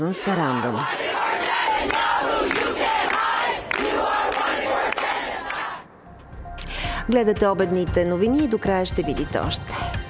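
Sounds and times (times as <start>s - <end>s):
speech: 0.0s - 3.1s, 7.1s - 10.0s
large protest crowd chanting: 0.3s - 5.9s.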